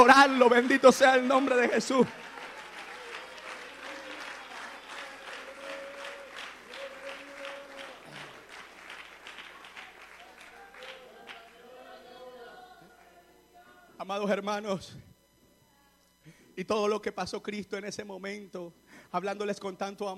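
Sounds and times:
speech: 0.0 - 2.3, 14.1 - 15.1, 16.6 - 20.1
audience clapping hands: 0.0 - 12.0.

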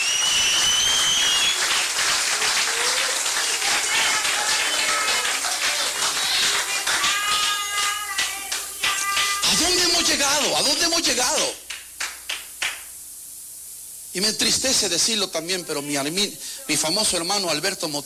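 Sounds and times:
large crowd clapping loudly in a reverberant hall: 0.0 - 10.6, 11.4 - 12.9
speech: 14.2 - 18.0.

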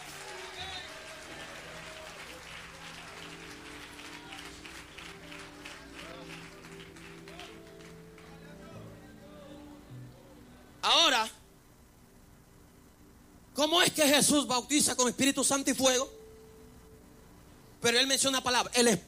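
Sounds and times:
crowd clapping: 0.0 - 8.9
murmuring voices: 0.0 - 10.8
speech: 13.6 - 16.2, 17.8 - 19.0.

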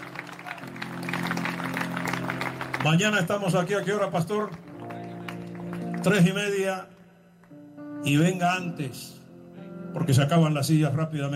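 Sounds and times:
audience applause: 0.0 - 6.4
speech: 2.8 - 4.6, 6.0 - 6.9, 8.0 - 9.2, 10.0 - 11.3.

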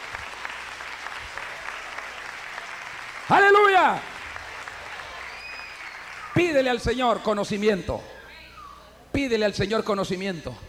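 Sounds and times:
audience applause: 0.0 - 6.9
speech: 3.3 - 4.1, 6.4 - 8.1, 9.1 - 10.6.

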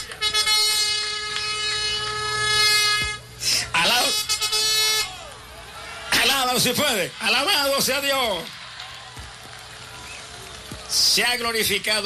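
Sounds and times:
trumpet blast: 0.0 - 5.3
speech: 6.6 - 8.6, 11.2 - 12.0.

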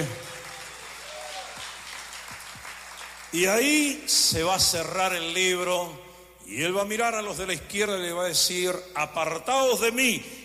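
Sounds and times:
audience applauding: 0.0 - 3.5
speech: 3.3 - 10.4.

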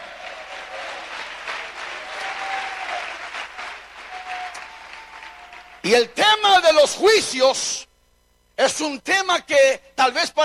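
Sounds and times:
applause: 0.0 - 6.1
speech: 5.9 - 7.9, 8.6 - 10.4.

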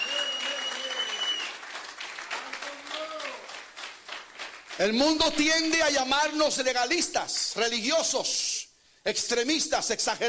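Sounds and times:
audience applause: 0.0 - 5.4
speech: 4.8 - 10.2.

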